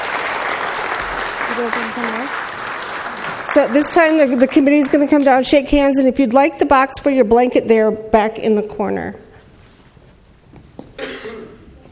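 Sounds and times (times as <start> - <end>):
round of applause: 0.0 - 5.4
speech: 1.6 - 2.4, 3.6 - 9.2.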